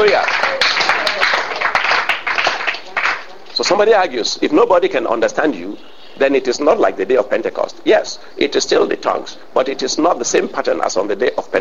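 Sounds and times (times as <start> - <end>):
church congregation clapping: 0.0 - 3.6
speech: 3.6 - 11.5.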